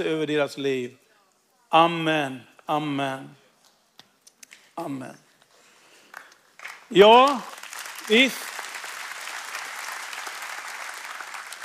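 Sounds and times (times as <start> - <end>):
speech: 0.0 - 1.0, 1.7 - 3.4, 4.8 - 5.2, 6.9 - 8.5
audience applause: 6.1 - 11.6.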